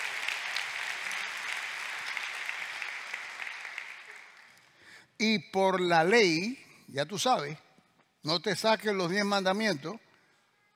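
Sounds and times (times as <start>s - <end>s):
audience applause: 0.0s - 4.7s
speech: 5.2s - 7.6s, 8.2s - 10.0s.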